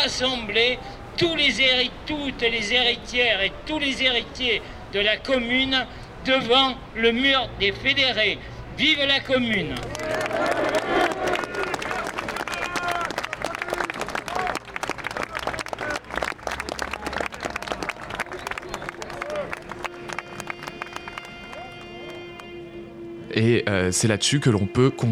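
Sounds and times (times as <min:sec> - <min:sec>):
speech: 0:00.0 - 0:10.7, 0:23.4 - 0:25.1
scattered clapping: 0:09.5 - 0:22.5
crowd voices at a commemorative street march: 0:09.7 - 0:25.1
sustained tone: 0:17.5 - 0:25.1.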